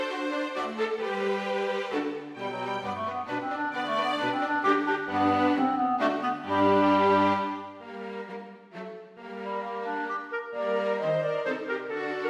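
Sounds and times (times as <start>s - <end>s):
minuet for clarinet, two violins or viola and cello: 0.0s - 12.2s.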